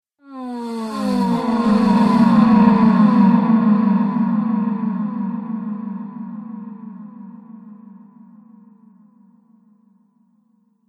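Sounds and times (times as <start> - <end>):
woman moaning in orgasm: 0.3 - 3.1
sci-fi music: 0.8 - 6.1.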